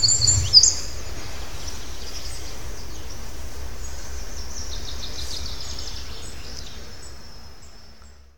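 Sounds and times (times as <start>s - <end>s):
Eurasian wren Troglodytes troglodytes song: 0.0s - 8.2s.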